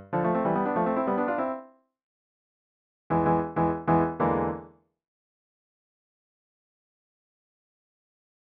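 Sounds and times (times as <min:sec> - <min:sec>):
Spanish-style melody: 0:00.0 - 0:01.7, 0:03.1 - 0:04.7.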